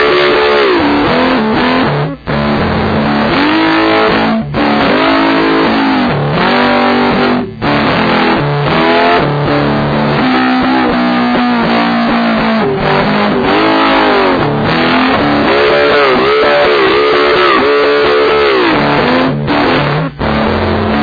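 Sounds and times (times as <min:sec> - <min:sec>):
acoustic guitar played with a bottleneck slide through a humbucker: 0:00.0 - 0:21.0.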